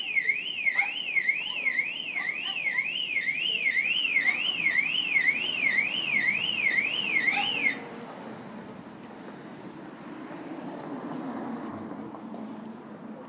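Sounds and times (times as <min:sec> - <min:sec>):
car alarms set off by dog: 0:00.0 - 0:07.8.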